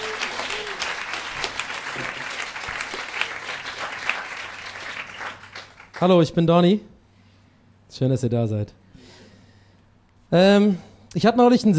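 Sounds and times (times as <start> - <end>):
audience applause: 0.0 - 6.0
speech: 6.0 - 6.9, 7.9 - 8.8, 10.3 - 11.7.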